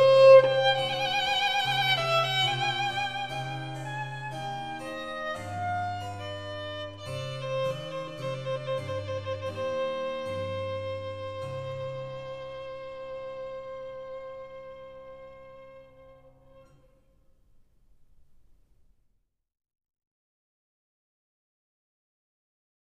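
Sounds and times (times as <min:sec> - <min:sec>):
violin and harpsichord sonata slow movement: 0:00.0 - 0:16.8.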